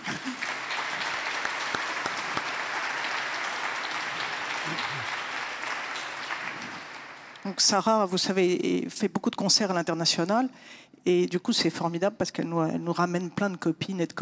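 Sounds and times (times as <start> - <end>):
audience applause: 0.0 - 7.5
speech: 7.5 - 14.1.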